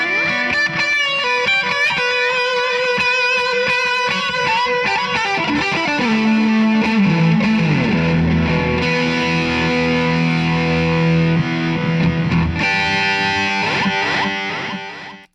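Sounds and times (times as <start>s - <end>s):
Line6 ODR1 opto overdrive pedal sound: 0.0s - 15.3s.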